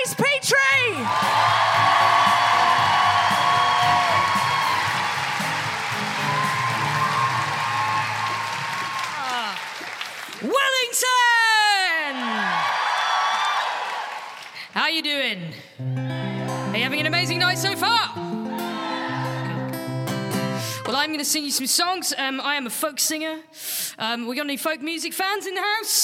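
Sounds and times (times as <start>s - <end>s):
crowd cheering and applauding: 0.1s - 14.7s, 15.8s - 20.8s
high swooping yells: 0.7s - 9.3s
speech: 17.0s - 18.4s, 21.0s - 25.9s.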